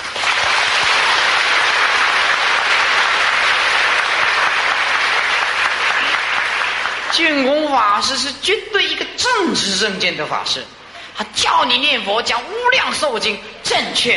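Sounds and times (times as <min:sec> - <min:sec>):
audience applause in lecture hall: 0:00.0 - 0:07.3
speech: 0:07.2 - 0:14.1.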